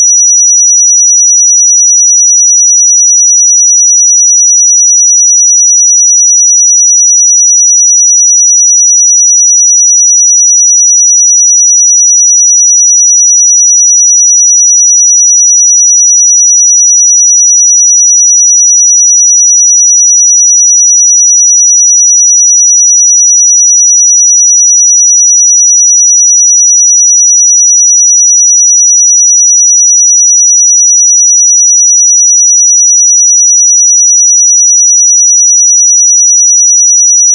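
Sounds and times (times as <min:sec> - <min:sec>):
5855 Hz pure sine tone: 0:00.0 - 0:37.3.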